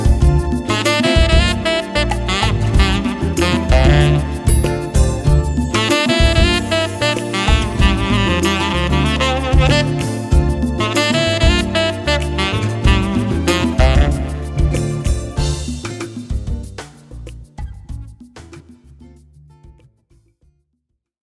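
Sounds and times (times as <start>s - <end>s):
saxophonist playing Latin music: 0.0s - 16.8s.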